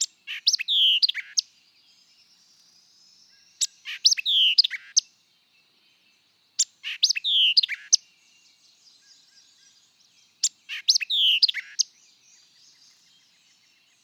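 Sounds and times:
white-eyed vireo song of sharp chips and slurred whistles: 0:00.0 - 0:01.5, 0:03.3 - 0:05.1, 0:06.6 - 0:08.0, 0:10.4 - 0:13.4.

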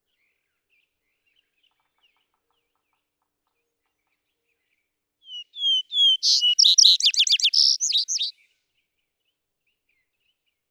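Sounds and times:
Vesper sparrow song: 0:05.3 - 0:08.3.

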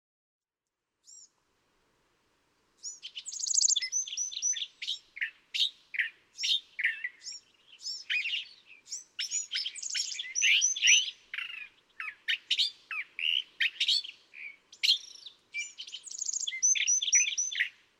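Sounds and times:
California thrasher singing varied raspy and chattering phrases: 0:02.9 - 0:05.3, 0:06.4 - 0:17.7.

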